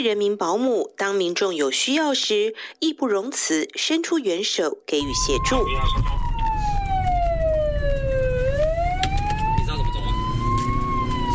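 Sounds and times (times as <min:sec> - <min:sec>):
speech: 0:00.0 - 0:06.2
police car siren wailing: 0:05.0 - 0:11.3.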